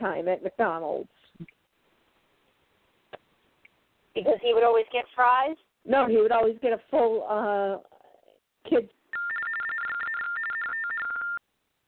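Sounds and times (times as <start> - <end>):
speech: 0.1 - 1.6, 4.2 - 7.9, 8.6 - 9.0
dial-up modem sound: 9.2 - 11.4.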